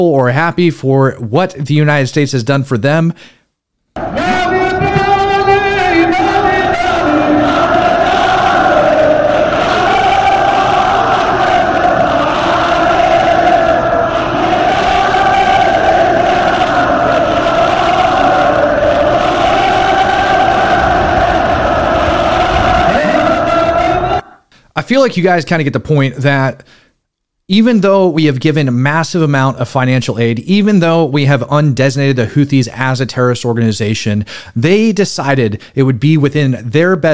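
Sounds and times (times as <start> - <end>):
speech: 0.0 - 3.4, 24.9 - 26.8, 27.5 - 37.1
huge crowd chanting at a rally in Yemen: 4.0 - 24.4.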